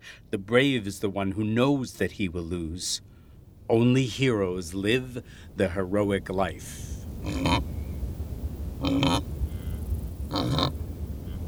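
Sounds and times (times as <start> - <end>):
low steady rumble: 0.0 - 11.4
speech: 0.1 - 7.8, 8.8 - 9.4
wildebeest grunting while grazing: 7.2 - 7.7, 8.8 - 10.8.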